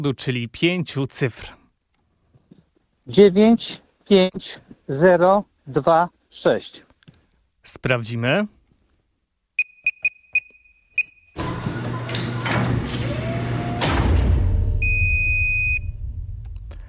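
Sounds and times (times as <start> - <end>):
speech: 0.0 - 1.6, 3.1 - 6.8, 7.6 - 8.6
short high electronic beeps of a safe: 9.6 - 11.3, 14.8 - 16.0
electronic safe mechanism whirring open: 11.4 - 15.1.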